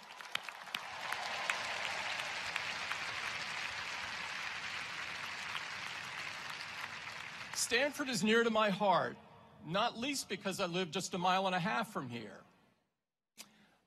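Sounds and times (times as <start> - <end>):
audience applause: 0.0 - 8.0
speech: 7.6 - 12.4.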